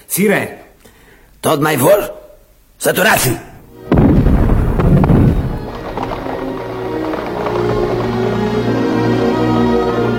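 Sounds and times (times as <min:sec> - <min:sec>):
speech: 0:00.2 - 0:00.6, 0:01.4 - 0:02.2, 0:02.8 - 0:04.2
cannon artillery fire: 0:03.8 - 0:10.0.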